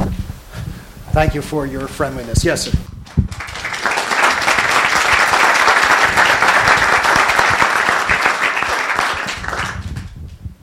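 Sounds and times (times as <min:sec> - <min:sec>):
speech: 0:01.2 - 0:03.4
audience applause: 0:03.3 - 0:10.1.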